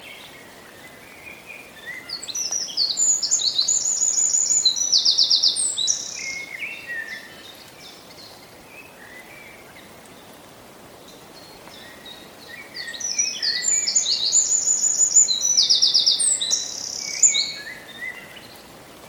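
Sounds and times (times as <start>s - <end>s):
hiss: 0.0s - 19.0s
Eurasian wren song: 2.1s - 7.2s, 12.5s - 18.6s.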